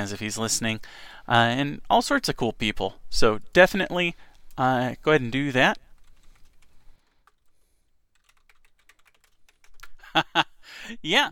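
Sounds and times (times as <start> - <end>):
speech: 0.0 - 5.8, 10.1 - 11.3
typing on a computer keyboard: 6.0 - 10.0.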